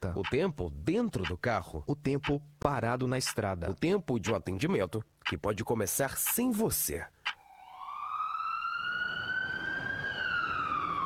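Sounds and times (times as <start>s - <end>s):
speech: 0.2s - 7.2s
emergency vehicle siren: 7.4s - 11.0s.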